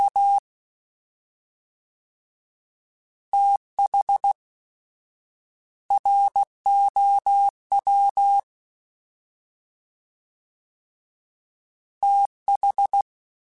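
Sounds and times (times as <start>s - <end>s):
fast CW Morse code groups: 3.4s - 4.4s, 5.9s - 8.5s, 12.0s - 13.0s.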